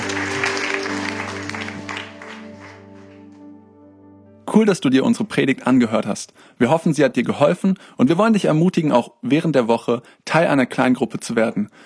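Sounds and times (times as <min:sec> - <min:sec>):
audience applause: 0:00.0 - 0:03.5
low sustained musical tone: 0:00.0 - 0:05.0
speech: 0:04.6 - 0:11.8.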